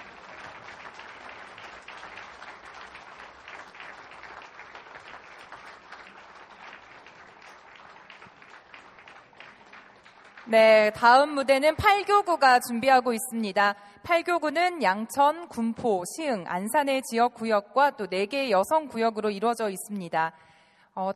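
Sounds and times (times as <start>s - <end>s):
audience applause: 0.0s - 10.6s
speech: 10.5s - 21.1s.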